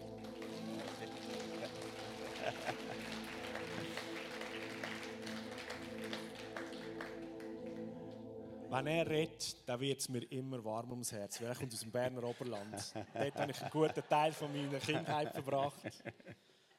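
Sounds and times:
audience applause: 0:00.0 - 0:07.9
laughter: 0:00.4 - 0:05.0, 0:11.4 - 0:16.4
speech: 0:02.5 - 0:03.3, 0:08.7 - 0:16.5.

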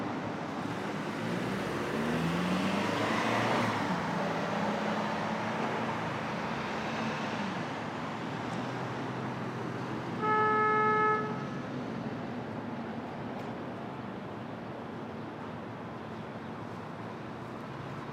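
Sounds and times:
street traffic at dawn in Brooklyn: 0:00.0 - 0:18.1
car horn: 0:10.2 - 0:11.5.

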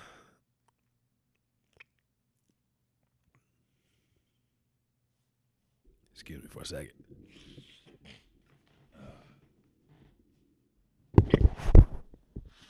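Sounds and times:
speech: 0:06.2 - 0:08.2
microphone knocked down: 0:11.1 - 0:12.5.

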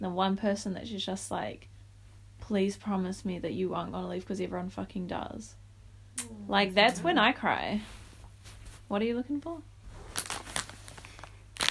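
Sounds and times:
speech: 0:00.0 - 0:01.7, 0:02.4 - 0:05.6, 0:06.2 - 0:09.7
crunching M&M candy-coated chocolate at the microphone: 0:10.1 - 0:11.6.

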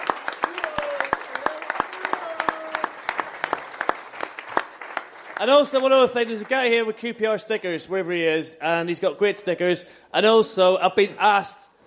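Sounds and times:
audience applause: 0:00.0 - 0:06.8
speech: 0:05.4 - 0:11.7.

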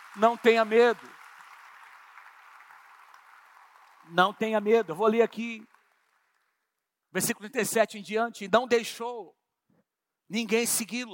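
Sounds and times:
church congregation applauding during a morning service: 0:00.0 - 0:06.8
speech: 0:00.2 - 0:01.2, 0:04.1 - 0:05.7, 0:07.1 - 0:09.4, 0:10.3 - 0:11.1.

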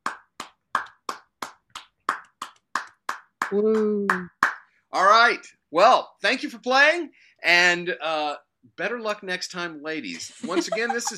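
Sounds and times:
slow polite golf clap: 0:00.0 - 0:04.7
speech: 0:03.5 - 0:11.1
laughter: 0:10.2 - 0:11.1.

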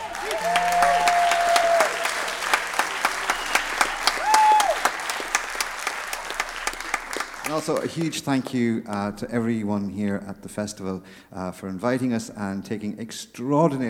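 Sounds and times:
audience applause: 0:00.0 - 0:08.6
speech: 0:07.6 - 0:13.8.

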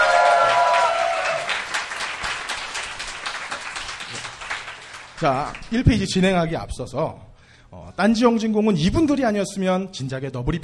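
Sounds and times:
audience applause: 0:00.0 - 0:05.8
speech: 0:05.2 - 0:10.6.

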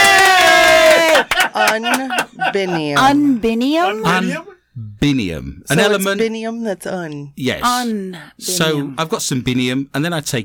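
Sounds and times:
excited shouts: 0:00.0 - 0:02.2
several voices cheering: 0:00.0 - 0:02.3
laughter: 0:00.9 - 0:04.4
speech: 0:01.8 - 0:10.4.

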